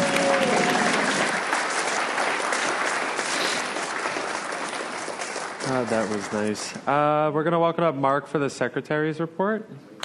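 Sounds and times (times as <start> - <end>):
audience clapping for a performer at a recovery meeting: 0.0 - 6.8
speech: 5.7 - 9.9.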